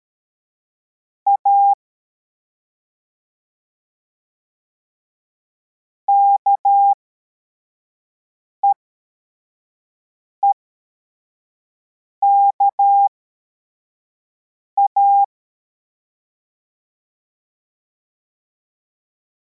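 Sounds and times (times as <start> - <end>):
CW morse code beeps: 1.3 - 1.8, 6.1 - 7.0, 12.2 - 13.1, 14.8 - 15.3.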